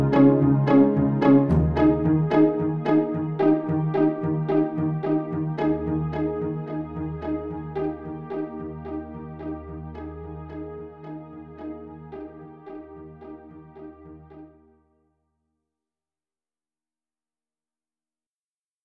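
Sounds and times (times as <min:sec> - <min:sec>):
pizzicato string plucks: 0:00.0 - 0:13.8.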